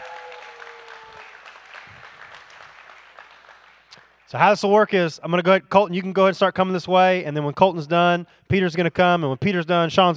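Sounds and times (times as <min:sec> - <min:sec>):
crowd clapping: 0:00.0 - 0:04.5
speech: 0:04.3 - 0:10.1.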